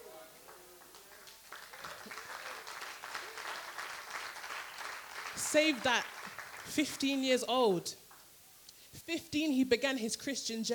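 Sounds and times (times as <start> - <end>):
audience clapping: 0.0 - 7.5
speech: 5.5 - 6.1, 6.7 - 8.0, 9.1 - 10.7.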